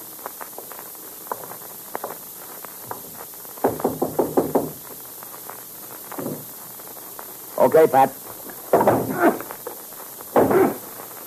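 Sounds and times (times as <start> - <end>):
faint steady hiss: 0.0 - 11.2
knocking on a door on the top floor of a building: 3.6 - 4.8, 8.7 - 9.2, 10.4 - 10.8
speech: 7.6 - 8.2.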